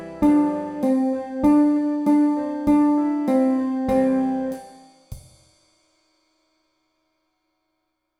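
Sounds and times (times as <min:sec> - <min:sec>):
song: 0:00.0 - 0:04.8.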